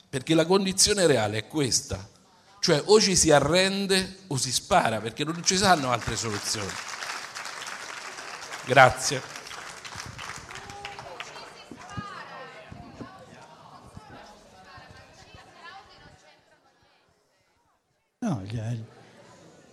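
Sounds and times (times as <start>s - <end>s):
speech: 0.1s - 6.9s, 8.7s - 9.4s
audience applause: 5.3s - 12.6s.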